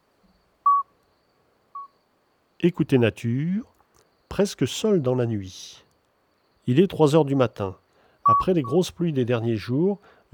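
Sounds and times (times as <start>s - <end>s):
speech: 2.6s - 3.7s, 4.4s - 5.8s, 6.6s - 10.3s
common midwife toad piping notes: 8.3s - 9.6s.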